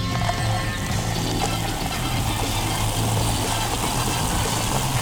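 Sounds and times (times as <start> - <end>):
carbonated drink fizzing in a glass after pouring: 0.2 - 4.9.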